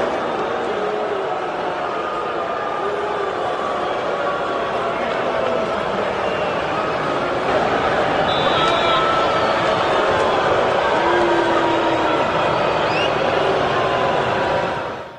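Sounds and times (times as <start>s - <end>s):
huge stadium crowd booing: 0.0s - 15.1s
sharp whistles: 8.2s - 9.5s, 12.8s - 13.4s.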